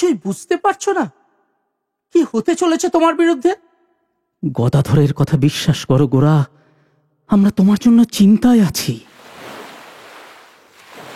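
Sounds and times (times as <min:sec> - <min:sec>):
speech: 0:00.0 - 0:01.2, 0:02.1 - 0:03.7, 0:04.4 - 0:06.6, 0:07.3 - 0:09.1
ocean waves surging: 0:09.1 - 0:11.1.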